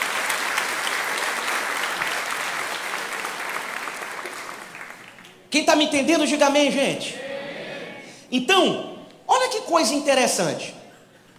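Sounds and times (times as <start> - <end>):
audience applause: 0.0 - 5.4
speech: 5.5 - 7.2, 8.3 - 8.9, 9.6 - 10.8.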